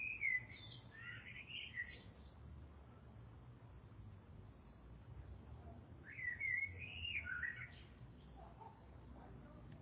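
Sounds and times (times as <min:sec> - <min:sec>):
birds chirping: 0:00.0 - 0:02.4, 0:06.0 - 0:08.8.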